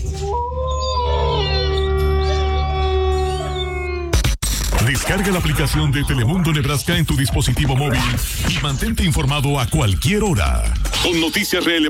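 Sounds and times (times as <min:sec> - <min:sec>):
wolf howls used as a jingle effect: 0:00.0 - 0:04.2
speech: 0:05.0 - 0:11.8.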